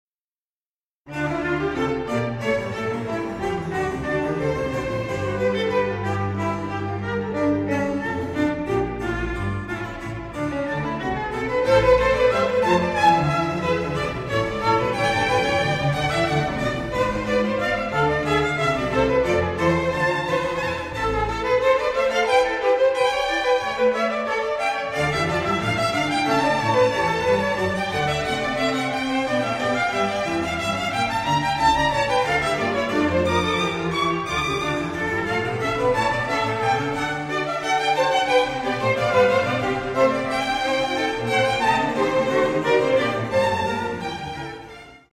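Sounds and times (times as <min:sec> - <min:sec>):
two violins playing a concerto: 0:01.1 - 0:45.1.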